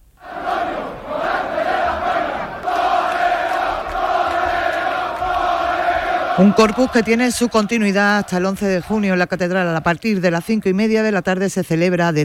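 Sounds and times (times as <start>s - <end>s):
crowd in the streets of Seville cheering and chanting for a bullfighter: 0.1s - 10.5s
speech: 6.4s - 12.2s.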